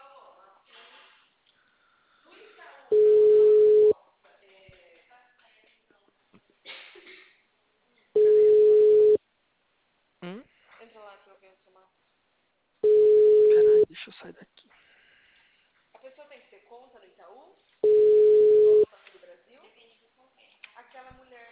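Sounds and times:
telephone ringback tone while a call is placed: 2.9 - 3.9, 8.2 - 9.2, 12.8 - 13.8, 17.8 - 18.8.

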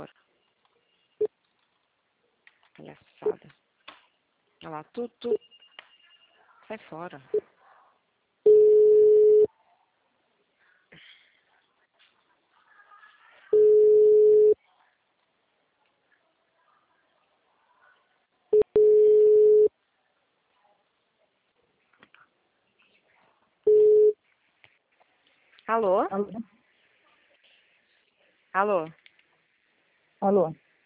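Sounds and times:
speech: 2.8 - 3.6, 4.6 - 5.5, 6.7 - 7.5, 25.7 - 26.5, 28.5 - 29.0, 30.2 - 30.6
telephone busy tone after a dropped call: 8.5 - 9.5, 13.6 - 14.6, 18.6 - 19.7, 23.7 - 24.2.

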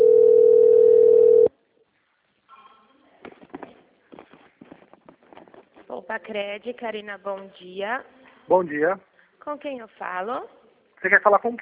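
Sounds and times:
telephone ringing tone on an outgoing call: 0.0 - 1.5
speech: 6.0 - 11.5.

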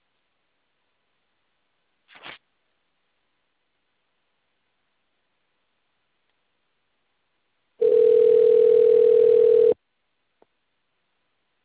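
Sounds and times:
telephone call transfer tone: 7.8 - 9.8.

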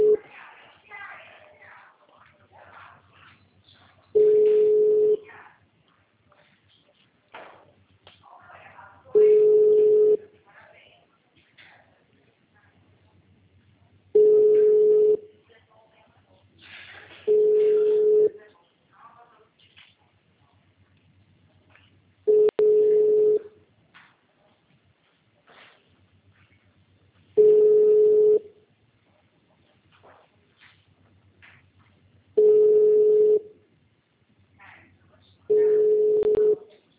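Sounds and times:
ringback tone of a telephone call to city hall: 0.0 - 0.2, 4.2 - 5.2, 9.2 - 10.2, 14.2 - 15.2, 17.3 - 18.4, 22.3 - 23.5, 27.4 - 28.5, 32.4 - 33.5, 35.5 - 36.6.

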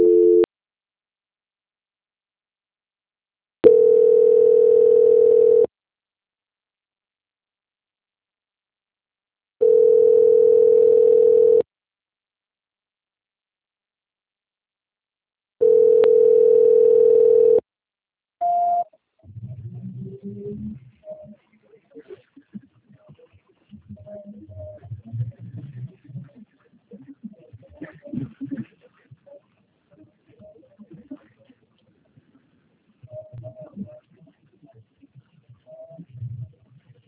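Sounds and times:
telephone tone while a call is being transferred: 0.0 - 0.5, 3.6 - 5.7, 9.6 - 11.6, 15.6 - 17.6
faint garbled sounds: 19.3 - 37.0.

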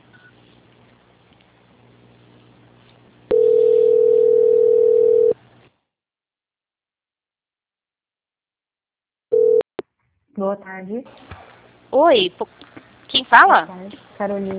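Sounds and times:
telephone line tone during call transfer: 3.3 - 5.4, 9.3 - 9.6
speech: 10.4 - 14.5.

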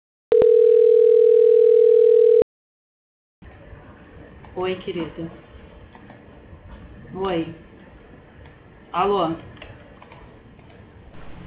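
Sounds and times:
steady telephone tone during a call transfer: 0.3 - 2.5
speech: 4.6 - 5.5, 7.2 - 7.7, 8.9 - 9.5.

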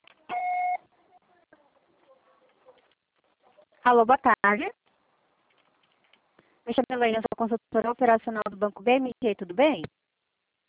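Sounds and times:
voicemail recording system beep: 0.3 - 0.8
speech: 3.9 - 4.8, 6.7 - 10.0.

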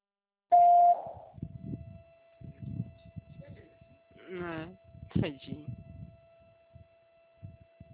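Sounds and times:
voicemail beep tone: 0.5 - 1.3
speech: 4.4 - 5.6.

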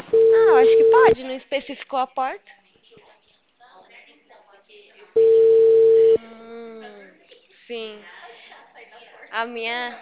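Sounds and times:
telephone ringing tone on an outgoing call: 0.1 - 1.2, 5.2 - 6.2
speech: 0.6 - 2.6, 7.7 - 8.2, 9.3 - 10.0.

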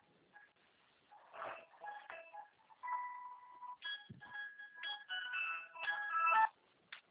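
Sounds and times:
telephone ringing with warbling electronic tone: 1.2 - 6.6.

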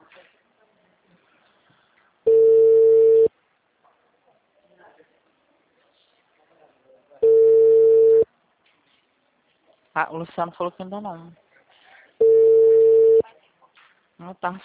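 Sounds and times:
telephone line tones after a dropped call: 2.3 - 3.3, 7.2 - 8.2, 12.2 - 13.2
speech: 10.0 - 11.4, 14.2 - 14.6.

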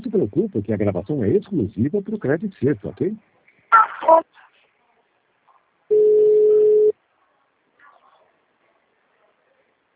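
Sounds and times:
speech: 0.2 - 3.4
telephone line tone during a call transfer: 5.9 - 6.9.

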